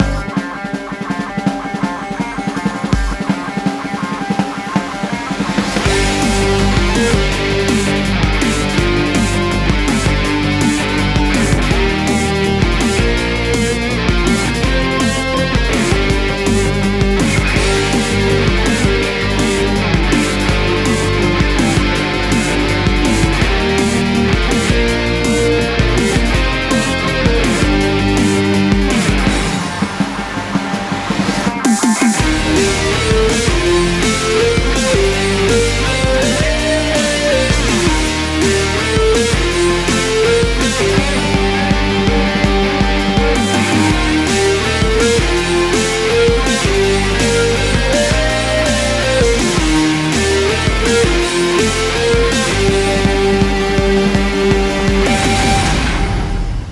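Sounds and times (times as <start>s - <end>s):
mountain level music loop: 0.0s - 55.8s.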